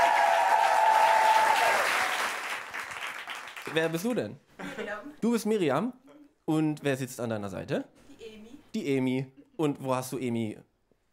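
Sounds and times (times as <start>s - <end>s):
audience applause after a performer's set: 0.0s - 4.0s
speech: 3.7s - 8.0s, 8.7s - 10.7s.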